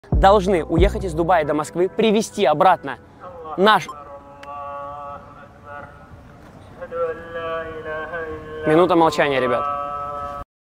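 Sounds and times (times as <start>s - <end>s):
Azan call to prayer: 0.0s - 10.4s.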